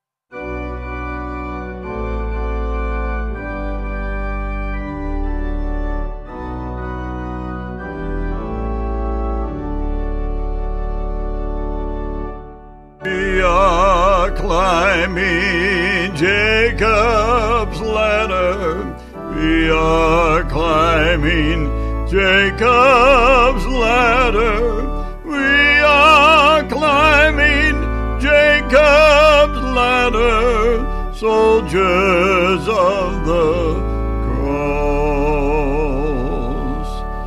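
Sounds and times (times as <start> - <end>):
organ: 0.3 - 37.2
spiritual vocals: 13.0 - 37.2.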